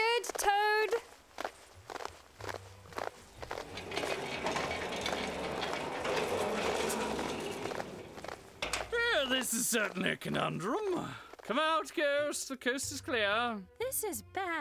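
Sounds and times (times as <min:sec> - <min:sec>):
footsteps walking away: 0:00.3 - 0:11.5
speech: 0:09.5 - 0:14.5.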